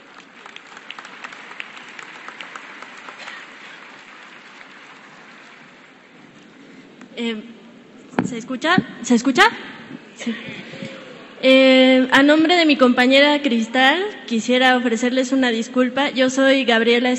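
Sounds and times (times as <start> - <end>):
audience applause: 0.0 - 6.7
speech: 7.2 - 7.6, 8.3 - 10.8, 11.4 - 17.1.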